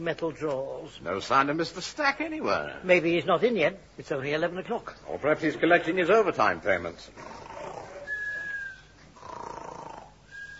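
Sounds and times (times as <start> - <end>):
speech: 0.0 - 7.4
person snoring inside a filing cabinet: 7.2 - 8.1, 9.2 - 10.4.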